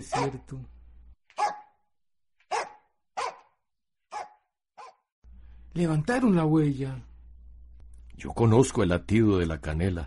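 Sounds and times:
dog barking: 0.0s - 0.5s, 1.3s - 1.8s, 2.4s - 5.1s
speech: 0.0s - 0.8s, 5.8s - 7.1s, 8.2s - 10.0s.

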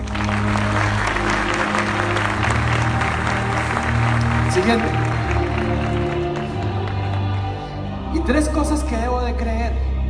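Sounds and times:
loud audience applause: 0.0s - 7.8s
speech: 4.6s - 5.0s, 8.3s - 9.9s.

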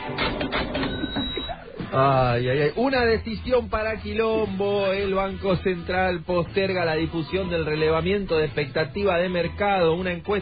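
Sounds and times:
cash register sound effect clattering and whirring: 0.0s - 1.5s
speech: 2.0s - 10.4s.

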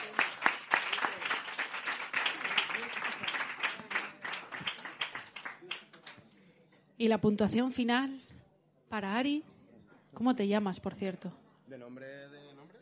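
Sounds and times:
loud crowd applause: 0.0s - 6.2s
speech: 7.0s - 8.2s, 8.9s - 9.5s, 10.1s - 12.8s.

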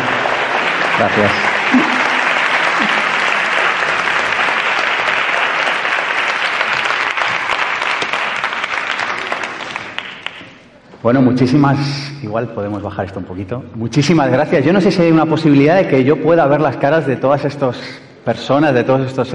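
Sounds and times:
audience applause: 0.0s - 10.8s
speech: 1.0s - 2.0s, 11.0s - 19.3s.

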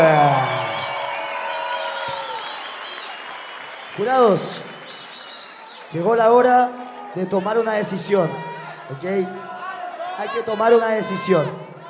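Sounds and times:
audience applause: 0.0s - 8.1s
audience cheering: 0.0s - 11.8s
speech: 4.0s - 4.7s, 5.9s - 9.5s, 10.2s - 11.7s.

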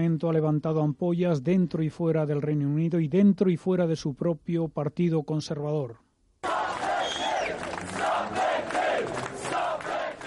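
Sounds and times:
speech: 0.0s - 6.0s
thousands of protesters chanting slogans outside Westminster: 6.4s - 10.2s.

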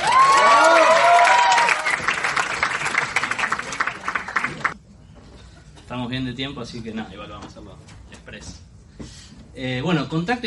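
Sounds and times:
audience applause: 0.0s - 4.8s
crowd cheering: 0.0s - 4.8s
speech: 6.3s - 8.6s, 9.6s - 10.4s.

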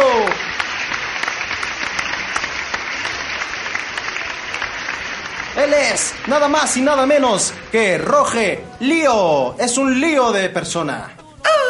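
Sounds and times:
audience applause: 0.0s - 7.7s
speech: 5.6s - 11.2s.

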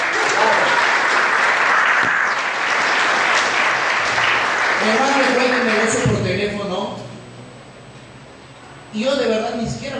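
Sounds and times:
audience applause: 0.0s - 6.0s
speech: 4.9s - 7.0s, 8.9s - 9.9s.

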